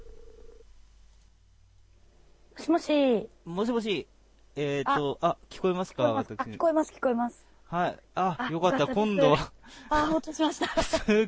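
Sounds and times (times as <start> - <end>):
telephone call ringing tone: 0.0 - 0.6
faint low hum: 0.0 - 11.2
speech: 2.6 - 11.2.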